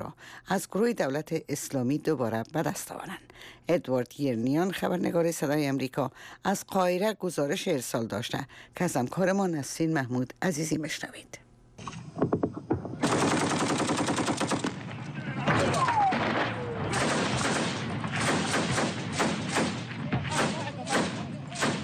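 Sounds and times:
speech: 0.1s - 12.3s
machine gun fire: 13.0s - 21.8s.

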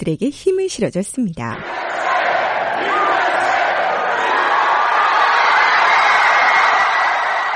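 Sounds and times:
speech: 0.0s - 2.1s
large crowd cheering and shouting at football match viewing: 1.5s - 7.5s.

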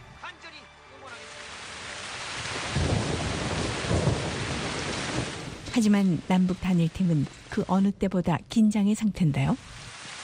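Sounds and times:
heavy rain pouring: 1.0s - 8.3s, 9.3s - 10.2s
deep thunder rumbling: 2.3s - 7.6s
speech: 5.8s - 9.8s.

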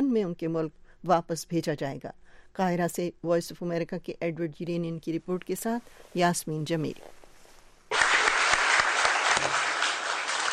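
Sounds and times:
speech: 0.2s - 7.2s
audience applause at press conference: 7.9s - 10.5s.

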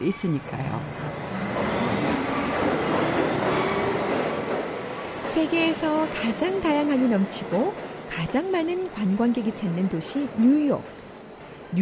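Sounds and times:
speech: 0.0s - 1.0s, 5.4s - 11.0s
subway train rumbling through underground tunnel: 0.0s - 11.8s.

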